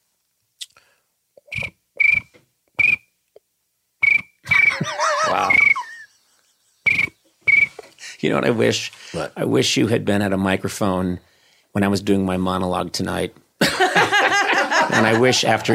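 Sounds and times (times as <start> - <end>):
person imitating a cricket chirping: 4.0 - 6.0, 6.9 - 7.8
laughter: 4.5 - 6.2, 13.6 - 15.7
speech: 8.2 - 13.4, 14.9 - 15.7.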